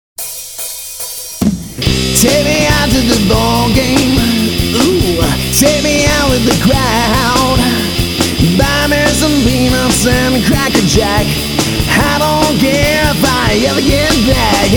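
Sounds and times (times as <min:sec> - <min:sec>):
rock band playing a baseball song: 0:00.2 - 0:14.7.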